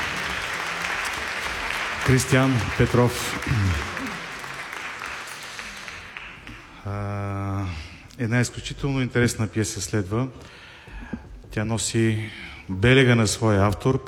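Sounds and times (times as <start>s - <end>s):
audience applause: 0.0s - 6.8s
speech: 2.1s - 4.0s, 6.9s - 14.0s.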